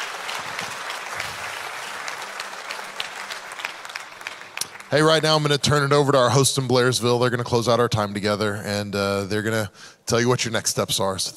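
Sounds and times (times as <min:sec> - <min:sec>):
audience applause: 0:00.0 - 0:05.6
speech: 0:04.9 - 0:11.3.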